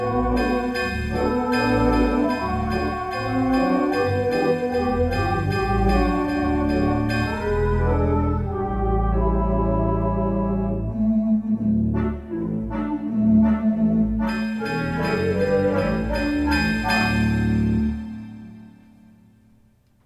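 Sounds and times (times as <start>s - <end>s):
theatre pipe organ playing: 0.0s - 11.1s, 11.9s - 18.8s.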